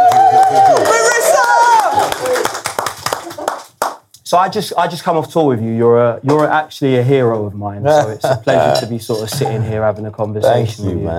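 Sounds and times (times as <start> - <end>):
audience clapping and cheering: 0.0 - 4.1
speech: 4.3 - 11.1.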